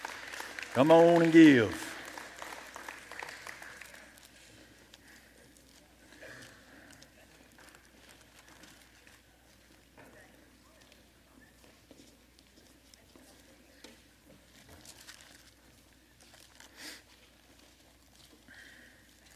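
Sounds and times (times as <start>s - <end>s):
audience applause: 0.0s - 4.3s
speech: 0.8s - 1.9s.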